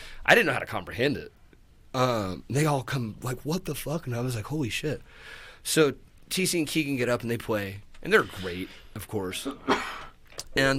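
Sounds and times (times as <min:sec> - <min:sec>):
speech: 0:00.2 - 0:10.0, 0:10.6 - 0:10.7
person sneezing: 0:09.4 - 0:10.1.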